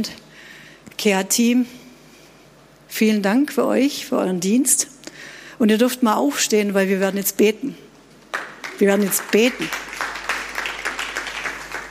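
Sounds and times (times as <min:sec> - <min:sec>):
speech: 0:00.0 - 0:00.3, 0:01.0 - 0:01.8, 0:02.9 - 0:07.8, 0:08.8 - 0:09.9
applause: 0:08.3 - 0:11.8.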